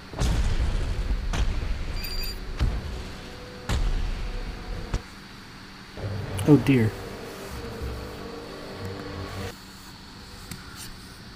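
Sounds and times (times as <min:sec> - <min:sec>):
computer cooling fan whirring: 0:00.8 - 0:11.3
speech: 0:06.5 - 0:07.0.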